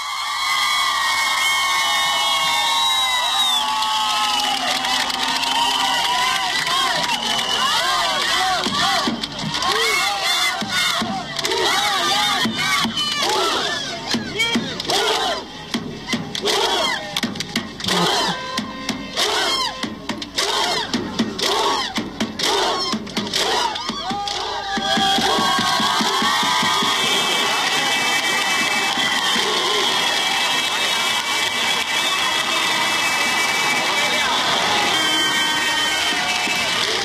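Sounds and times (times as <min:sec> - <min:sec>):
crowd of citizens cheering in Republic Square: 0:00.0 - 0:37.0
crowd whistling in Republic Square: 0:01.6 - 0:09.3, 0:28.8 - 0:36.8.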